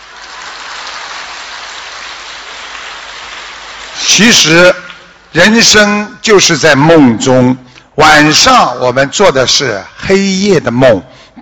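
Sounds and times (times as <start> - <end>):
applause: 0.0 - 5.2
speech: 4.0 - 11.3.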